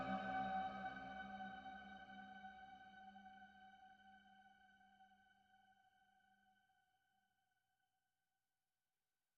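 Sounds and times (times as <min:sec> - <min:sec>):
ambient music: 0:00.0 - 0:02.8.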